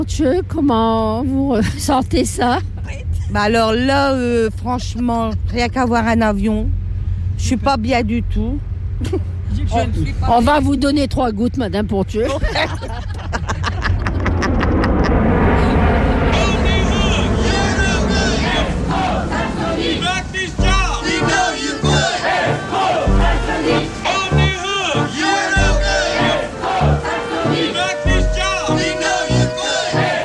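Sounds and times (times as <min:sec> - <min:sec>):
speech: 0:00.0 - 0:06.8, 0:07.4 - 0:13.1
laughter: 0:12.2 - 0:15.7
protesters chanting at a demonstration: 0:16.4 - 0:30.2
pulsing beats: 0:16.8 - 0:30.2.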